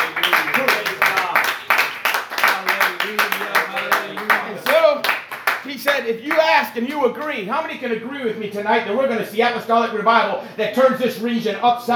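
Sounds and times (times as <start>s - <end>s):
people clapping: 0.0s - 7.4s
speech: 6.1s - 11.9s.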